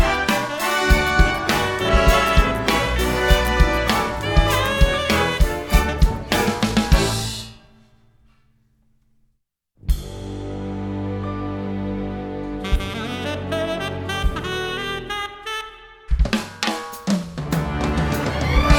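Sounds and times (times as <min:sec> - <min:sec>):
Motown orchestra music: 0:00.0 - 0:07.5, 0:09.9 - 0:15.2, 0:17.5 - 0:18.7.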